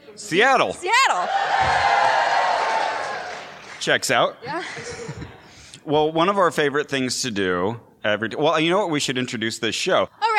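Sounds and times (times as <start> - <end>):
speech: 0.2 - 2.2, 3.8 - 10.3
audience cheering: 0.9 - 4.0
laughter: 4.5 - 5.7.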